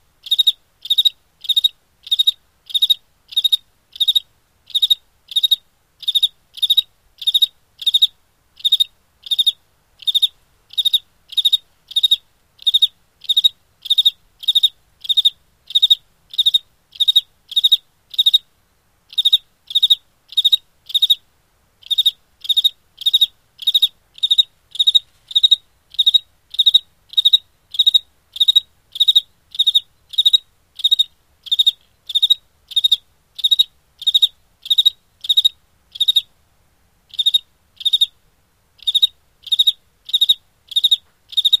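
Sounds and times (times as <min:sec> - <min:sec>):
single cricket chirping rhythmically: 0:00.2 - 0:18.5, 0:19.1 - 0:21.2, 0:21.8 - 0:36.3, 0:37.1 - 0:38.2, 0:38.8 - 0:41.5.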